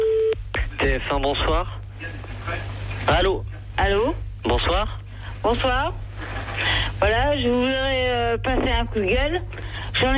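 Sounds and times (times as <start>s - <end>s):
steady telephone tone of a call placed to TF1: 0.0s - 0.4s
low constant hum: 0.0s - 10.1s
speech: 0.9s - 10.1s.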